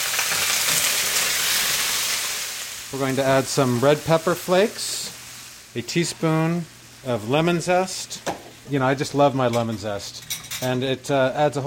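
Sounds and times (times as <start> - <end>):
garlic and pasta sizzling in a frying pan: 0.0 - 11.6
speech: 2.9 - 5.0, 5.8 - 11.6.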